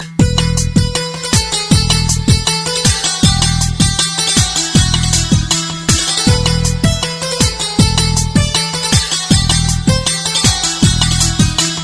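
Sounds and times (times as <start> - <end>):
instrumental music: 0.0 - 11.8.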